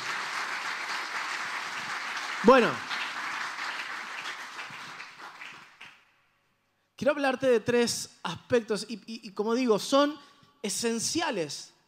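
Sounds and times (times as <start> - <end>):
audience applause: 0.0 - 6.0
speech: 2.4 - 2.9, 7.0 - 11.8.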